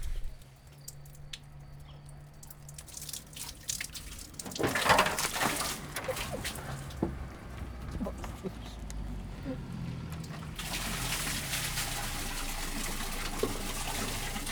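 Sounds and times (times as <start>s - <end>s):
wheeled well in Varboc: 4.4s - 14.5s.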